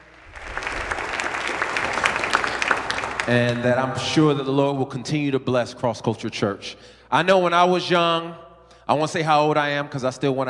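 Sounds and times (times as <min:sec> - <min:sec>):
audience applause: 0:00.0 - 0:03.8
speech: 0:03.2 - 0:10.4.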